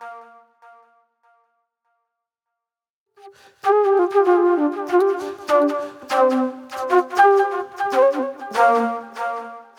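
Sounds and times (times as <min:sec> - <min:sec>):
acid trip flute music: 0:03.3 - 0:09.7.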